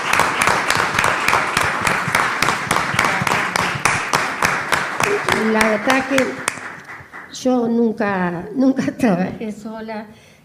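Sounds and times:
audience applause: 0.0s - 7.5s
speech: 5.4s - 6.5s, 7.3s - 10.3s.

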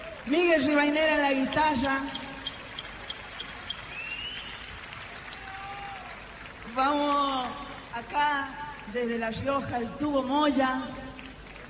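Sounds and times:
crowd applauding: 0.0s - 1.2s, 2.5s - 8.9s, 11.0s - 11.6s
speech: 0.2s - 2.2s, 6.8s - 11.0s
high whistles: 3.7s - 4.7s.

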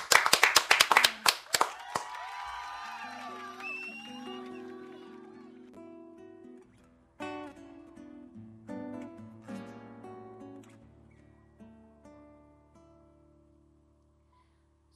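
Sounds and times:
audience applause: 0.0s - 5.8s.

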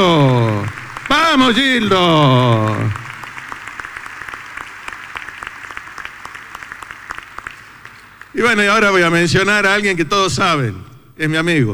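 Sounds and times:
audience applauding: 0.0s - 9.1s
speech: 1.4s - 3.0s, 8.4s - 11.7s.

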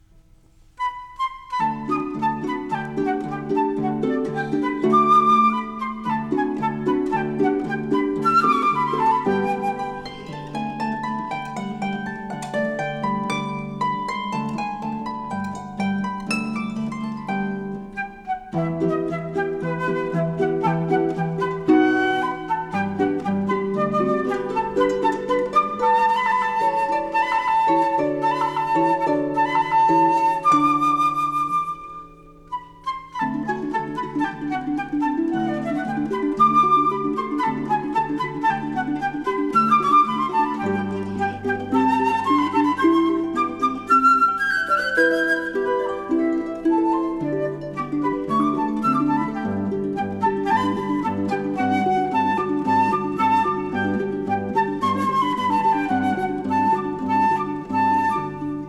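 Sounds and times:
harp in a sonata in G minor: 0.0s - 58.6s
flute in a sonata: 0.8s - 58.6s.

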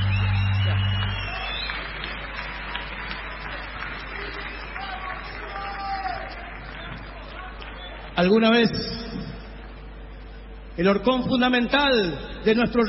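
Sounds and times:
audience applause for a charango player: 0.0s - 8.2s
speech: 8.2s - 9.0s, 10.8s - 12.8s.

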